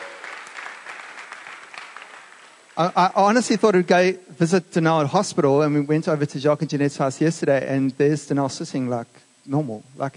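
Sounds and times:
congregation clapping in praise of the Lord: 0.0 - 3.0
speech: 2.8 - 10.1.

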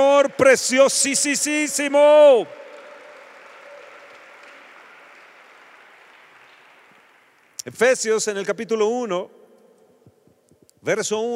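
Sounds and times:
audience applauding: 0.0 - 7.7
speech: 0.2 - 2.6, 7.7 - 9.4, 10.8 - 11.3.

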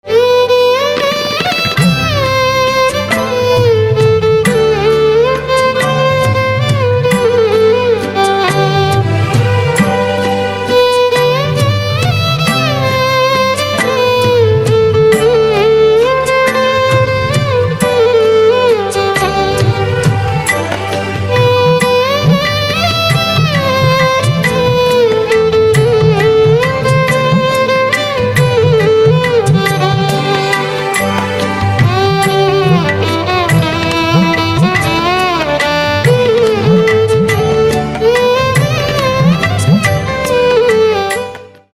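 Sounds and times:
violin: 0.0 - 41.7.

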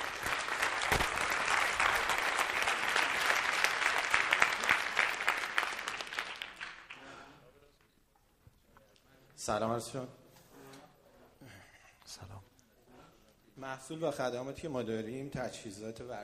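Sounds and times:
audience applause after a business presentation: 0.0 - 7.4
speech: 9.5 - 10.2, 13.7 - 16.2.

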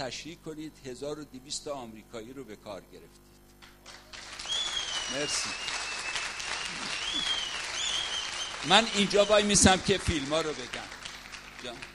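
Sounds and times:
speech: 0.0 - 3.4, 5.1 - 5.8, 8.6 - 11.0, 11.6 - 11.9
audience applause: 3.8 - 11.9
faint whistles or tonal squeaks: 4.4 - 9.5.

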